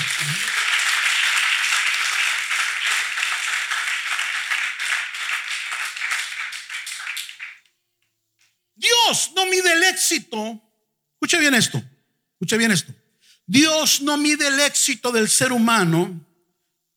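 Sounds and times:
audience applause: 0.0 - 7.6
speech: 9.1 - 16.3.

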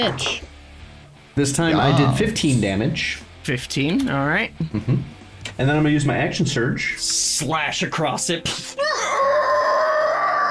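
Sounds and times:
speech: 0.0 - 0.4, 1.4 - 8.8
voice imitating a monster's scream: 8.8 - 10.4.

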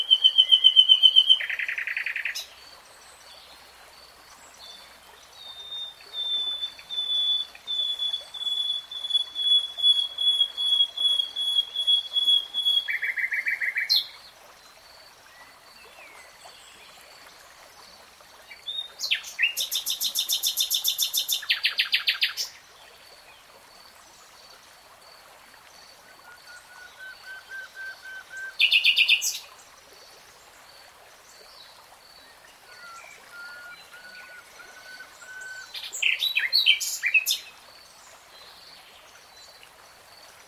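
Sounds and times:
nightingale singing: 0.0 - 2.4, 5.4 - 14.1, 26.5 - 29.4, 32.7 - 37.5
soft steady trickle of water: 0.0 - 40.4.

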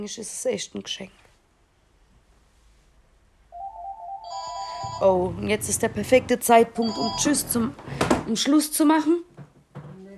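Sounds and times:
speech: 0.0 - 1.2, 5.0 - 9.3
phone ringing: 3.5 - 5.2, 6.8 - 7.7.

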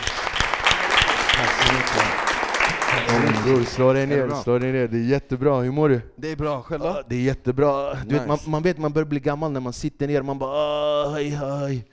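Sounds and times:
crowd clapping: 0.0 - 4.8
speech: 3.4 - 11.9.

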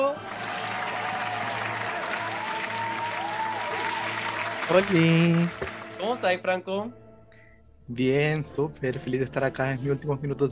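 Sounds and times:
audience applause: 0.0 - 6.4
speech: 4.7 - 7.0, 7.9 - 10.5.

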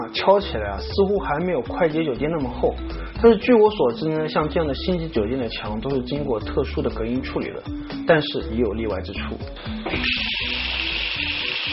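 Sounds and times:
speech: 0.1 - 10.5
water running in hotel room: 9.8 - 11.7.

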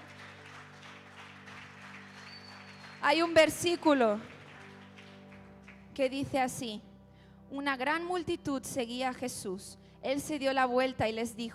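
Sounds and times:
audience applauding: 0.0 - 5.9
speech: 3.0 - 4.3, 6.0 - 6.9, 7.5 - 11.5.

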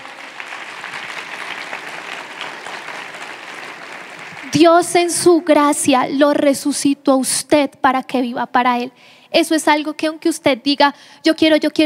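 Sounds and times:
applause: 0.0 - 5.0
speech: 4.4 - 11.8.

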